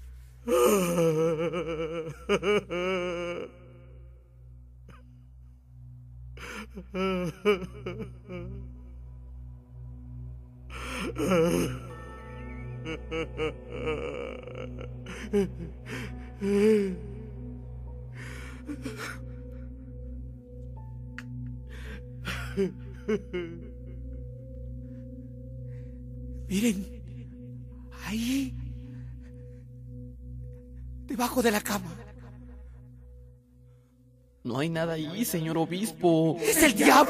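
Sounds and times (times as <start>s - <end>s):
man crying like a child in a radio drama: 0.4s - 4.2s, 6.4s - 9.1s, 10.7s - 20.4s, 21.0s - 24.8s, 26.3s - 32.7s, 35.0s - 37.0s
speech: 2.3s - 2.8s, 6.8s - 8.3s, 26.5s - 27.0s, 31.3s - 32.1s, 34.5s - 37.0s.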